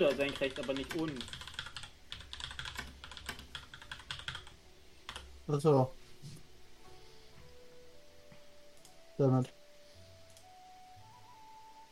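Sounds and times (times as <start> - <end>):
speech: 0.0 - 1.4, 5.5 - 6.4, 9.2 - 9.6
rapid typing on a computer keyboard writing a Discord message: 0.0 - 5.3.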